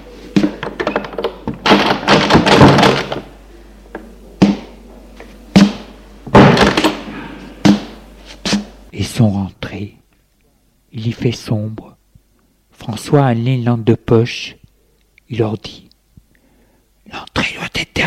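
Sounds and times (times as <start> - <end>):
heavy church door being opened: 0.3 - 3.3, 6.3 - 7.4
speech: 9.2 - 10.0, 10.9 - 12.0, 12.8 - 14.6, 15.3 - 15.8, 17.1 - 18.0.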